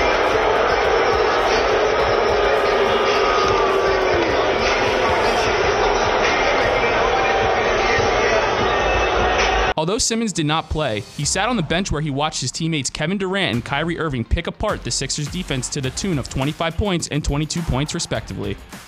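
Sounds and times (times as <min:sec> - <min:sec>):
arena crowd booing: 0:00.0 - 0:09.8
speech: 0:09.9 - 0:18.8.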